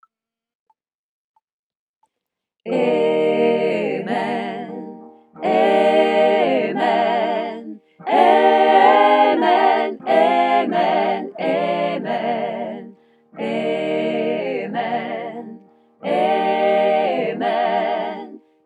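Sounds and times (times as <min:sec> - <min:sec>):
SATB choir singing: 0:02.7 - 0:18.6.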